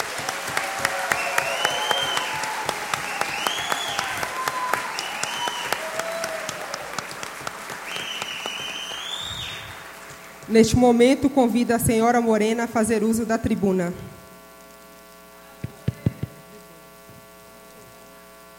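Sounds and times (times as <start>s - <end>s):
audience applause: 0.0s - 10.4s
speech: 10.5s - 14.1s.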